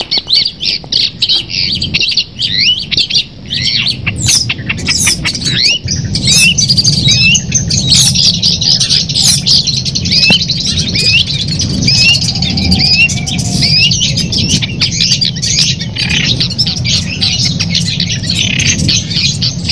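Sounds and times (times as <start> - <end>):
long-tailed shrike song with chattering trills: 0.0 - 19.7.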